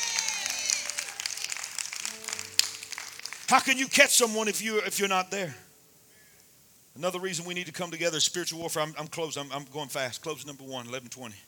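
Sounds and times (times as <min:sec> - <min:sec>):
audience clapping: 0:00.0 - 0:04.4
speech: 0:03.5 - 0:05.7, 0:07.0 - 0:11.4.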